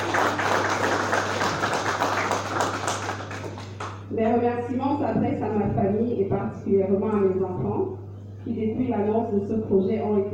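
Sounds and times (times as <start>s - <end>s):
audience applause: 0.0s - 4.0s
speech: 4.2s - 10.3s.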